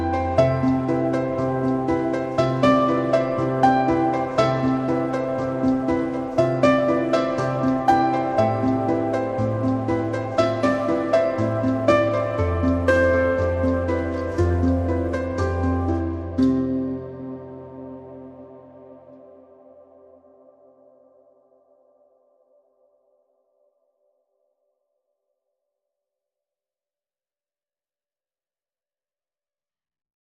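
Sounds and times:
pianos: 0:00.0 - 0:22.4.

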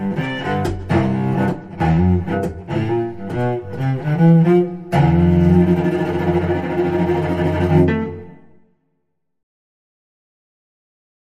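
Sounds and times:
cello playing rock shuffle: 0:00.0 - 0:08.6.

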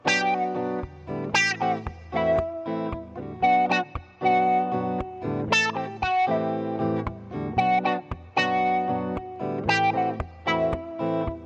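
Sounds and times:
wah guitar: 0:00.0 - 0:11.4.

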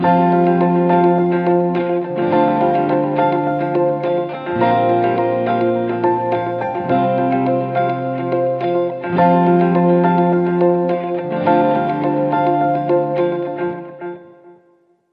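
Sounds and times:
bright confident music without drums: 0:00.0 - 0:14.3.

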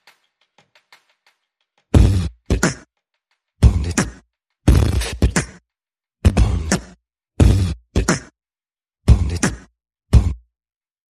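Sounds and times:
percussion: 0:00.0 - 0:05.6, 0:06.2 - 0:08.3.

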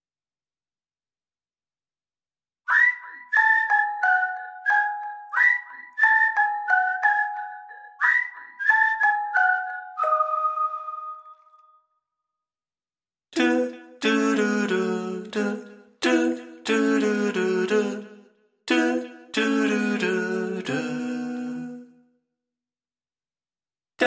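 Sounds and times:
music box: 0:02.7 - 0:11.7
whistling: 0:02.7 - 0:12.1
vocals: 0:13.3 - 0:22.3.

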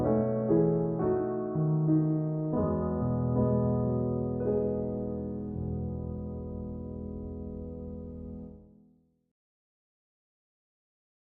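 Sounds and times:
solo piano: 0:00.0 - 0:09.0.

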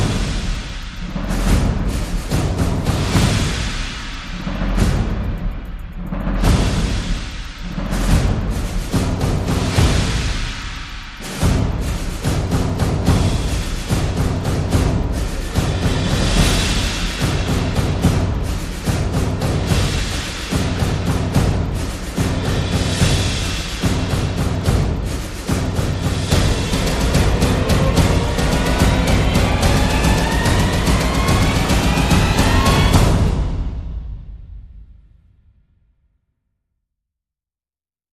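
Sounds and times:
percussion: 0:00.0 - 0:35.7
rising sound effects: 0:26.5 - 0:33.4.

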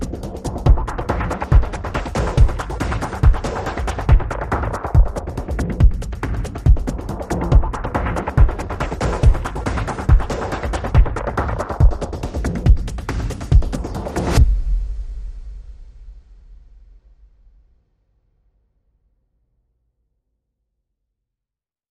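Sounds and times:
drum pulses: 0:00.0 - 0:16.8.

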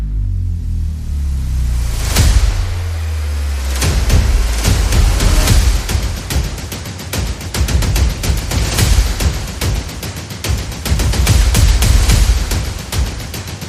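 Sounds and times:
sound effects: 0:00.0 - 0:06.5
percussion: 0:00.0 - 0:13.6.

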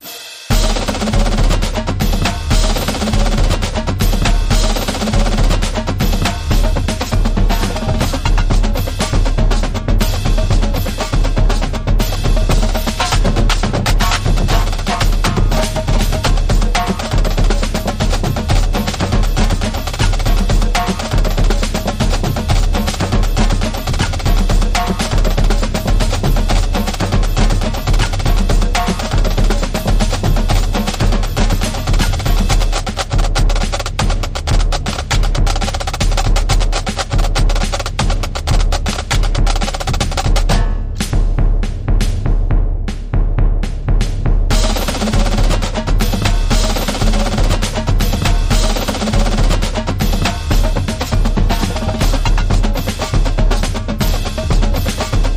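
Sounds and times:
R&B music: 0:00.0 - 0:55.3.

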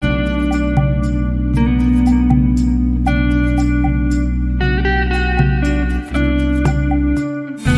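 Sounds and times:
nursery rhyme song: 0:00.1 - 0:07.6.

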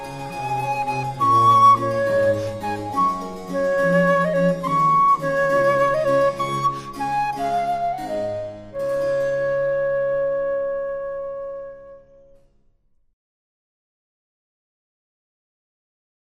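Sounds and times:
concerto for traverso, strings and basso continuo: 0:00.0 - 0:12.3.

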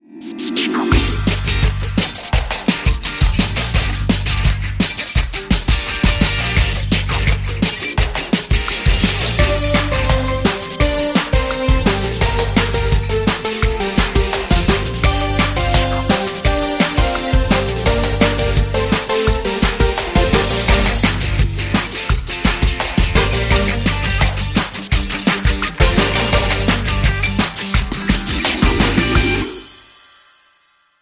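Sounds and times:
pop rock instrumental without vocals: 0:00.9 - 0:29.8.

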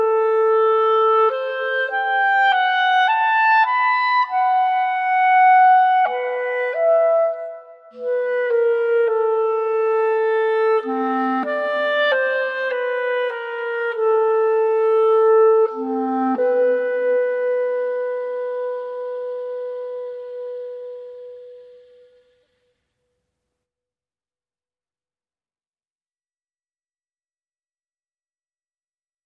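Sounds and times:
solo clarinet: 0:00.0 - 0:22.6.

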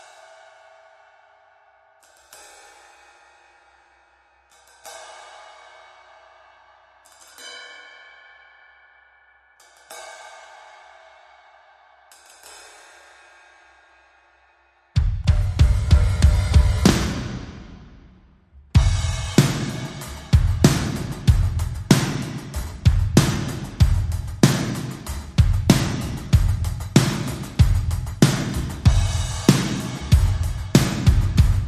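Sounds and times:
drum kit: 0:15.0 - 0:31.6.

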